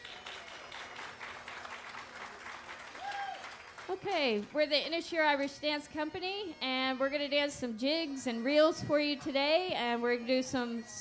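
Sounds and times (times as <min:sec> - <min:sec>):
audience applause welcoming an Irish dance company: 0:00.0 - 0:04.5
speech: 0:03.9 - 0:10.9.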